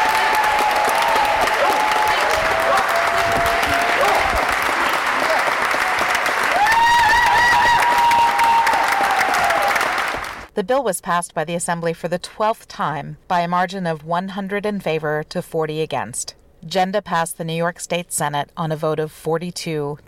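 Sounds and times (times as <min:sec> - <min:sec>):
cheers, whoops and high sustained shouts: 0:00.0 - 0:10.4
large crowd applauding in a legislative chamber: 0:00.0 - 0:10.5
speech: 0:10.6 - 0:20.0.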